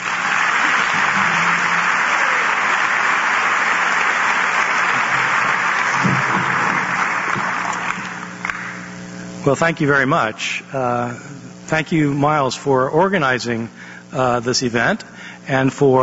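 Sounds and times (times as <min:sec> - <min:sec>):
audience clapping welcoming a speaker onto the stage: 0:00.0 - 0:09.0
speech: 0:09.5 - 0:16.0.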